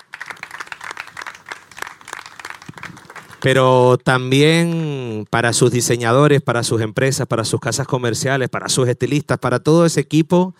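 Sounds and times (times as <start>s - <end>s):
crowd applause: 0.0s - 3.7s
speech: 3.4s - 10.5s.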